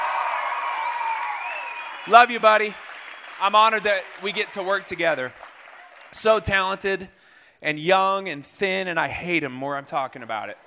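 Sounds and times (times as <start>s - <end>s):
audience clapping: 0.0s - 7.0s
speech: 2.0s - 2.8s, 3.4s - 5.4s, 6.1s - 10.6s.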